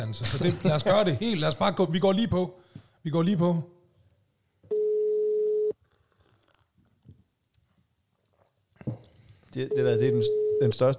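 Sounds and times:
speech: 0:00.0 - 0:03.8, 0:08.9 - 0:10.9
outgoing phone call ringing tone: 0:04.7 - 0:05.8, 0:09.7 - 0:10.8.

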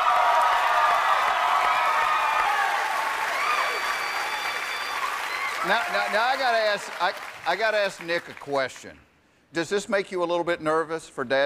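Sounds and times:
fans cheering and applauding: 0:00.0 - 0:08.5
speech: 0:05.6 - 0:11.4.

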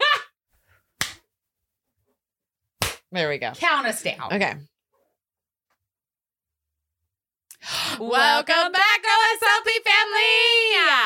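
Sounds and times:
single hand clap: 0:01.0 - 0:01.2, 0:02.8 - 0:03.0
speech: 0:03.1 - 0:04.7, 0:08.0 - 0:11.0.

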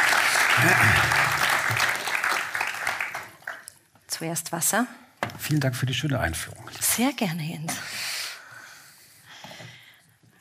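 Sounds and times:
audience applause: 0:00.0 - 0:03.7
speech: 0:00.6 - 0:01.2, 0:04.2 - 0:08.0.

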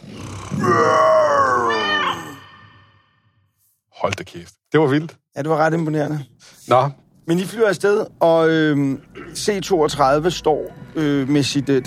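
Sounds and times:
person roaring into a cola bottle to imitate a lion: 0:00.0 - 0:02.4
speech: 0:04.3 - 0:11.8.

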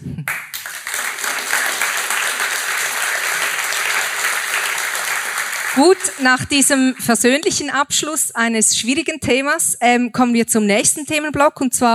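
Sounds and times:
audience applause: 0:00.3 - 0:07.2
speech: 0:05.8 - 0:11.9.

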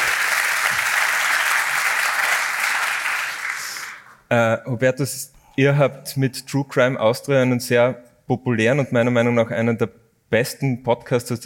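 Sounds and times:
audience clapping: 0:00.0 - 0:04.2
speech: 0:04.3 - 0:11.4.

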